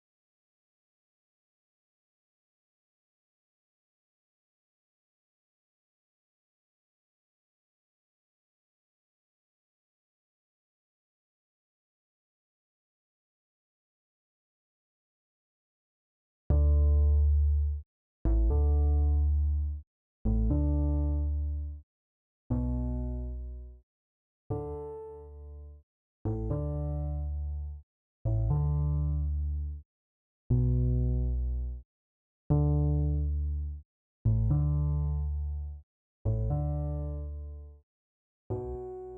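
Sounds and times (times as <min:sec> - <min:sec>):
bass: 0:16.5 - 0:21.8, 0:22.5 - 0:23.8, 0:24.5 - 0:29.8, 0:30.5 - 0:31.8, 0:32.5 - 0:37.8, 0:38.5 - 0:39.1.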